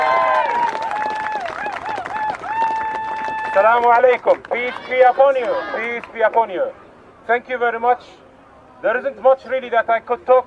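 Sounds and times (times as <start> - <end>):
cheering voices: 0.0 - 3.8, 4.6 - 6.1
audience applauding: 0.0 - 6.1
speech: 3.6 - 8.2, 8.8 - 10.4.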